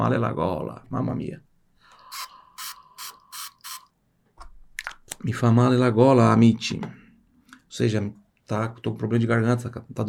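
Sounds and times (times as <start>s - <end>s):
speech: 0.0s - 1.5s, 5.2s - 7.0s, 7.8s - 10.0s
throat spray pump being sprayed: 2.1s - 3.9s.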